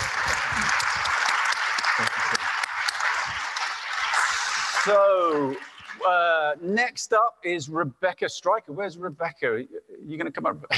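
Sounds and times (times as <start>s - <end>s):
audience applause: 0.0s - 6.4s
speech: 4.9s - 10.7s.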